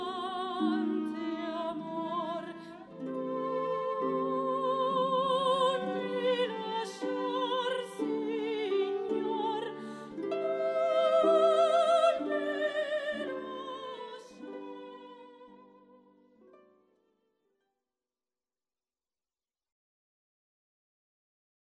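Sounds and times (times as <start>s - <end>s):
soprano singing: 0.0s - 16.4s
harp: 0.0s - 17.1s
violin: 0.0s - 17.2s.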